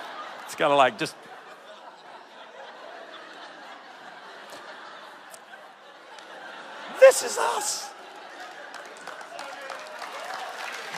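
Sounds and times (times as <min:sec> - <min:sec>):
laughter: 0:00.0 - 0:09.7
speech: 0:00.5 - 0:01.3, 0:07.1 - 0:08.0
audience clapping: 0:07.0 - 0:10.9.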